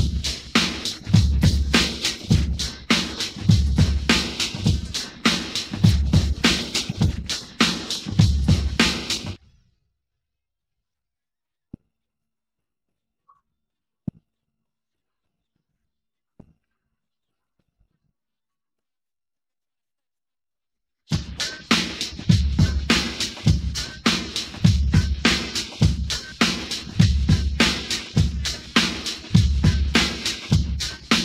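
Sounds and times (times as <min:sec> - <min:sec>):
drums: 0:00.0 - 0:09.4, 0:21.1 - 0:31.2.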